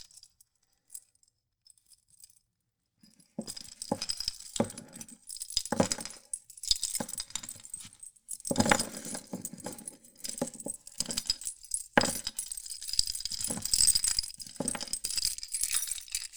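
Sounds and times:
bunch of keys jangled and shaken: 0:03.4 - 0:16.0.

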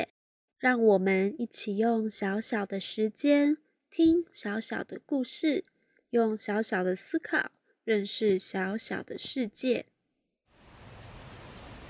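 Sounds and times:
speech: 0:00.0 - 0:09.9
rain falling outside: 0:10.5 - 0:11.8.

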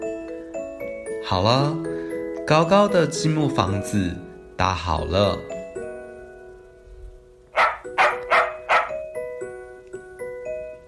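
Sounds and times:
speech: 0:01.2 - 0:01.9, 0:02.5 - 0:05.5
small dog barking: 0:07.5 - 0:09.0.

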